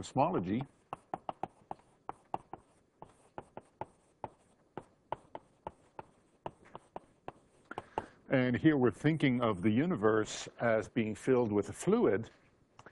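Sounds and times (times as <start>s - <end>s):
speech: 0.0s - 0.8s, 8.3s - 12.4s
equation being written on a board during a cosmology lecture: 0.4s - 8.1s.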